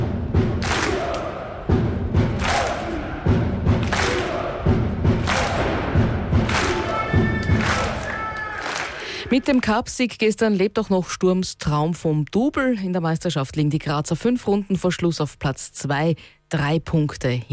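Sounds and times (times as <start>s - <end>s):
crowd of fans celebrating cup win: 0.6s - 9.2s
speech: 9.3s - 17.5s.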